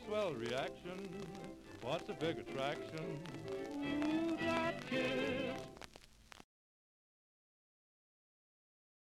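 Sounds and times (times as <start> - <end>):
1931 jazz orchestra with vocal: 0.0 - 5.8.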